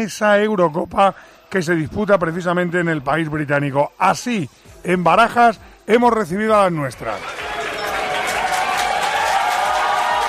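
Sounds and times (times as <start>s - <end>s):
speech: 0.0s - 7.4s
cheering: 7.2s - 10.2s
ovation applause: 7.2s - 10.2s.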